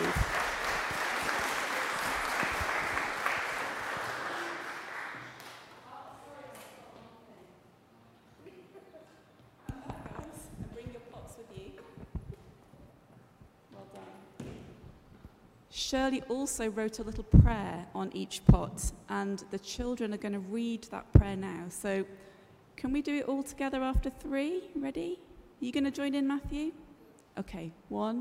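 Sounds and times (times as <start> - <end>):
audience clapping: 0.0 - 5.8
speech: 15.9 - 26.8, 27.4 - 28.1.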